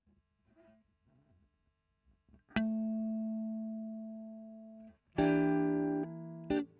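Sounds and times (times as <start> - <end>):
electric guitar: 2.5 - 6.7.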